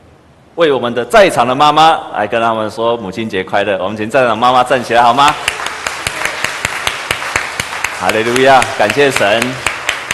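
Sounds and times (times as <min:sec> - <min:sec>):
speech: 0:00.6 - 0:05.5, 0:08.0 - 0:09.7
audience applause: 0:05.3 - 0:10.1.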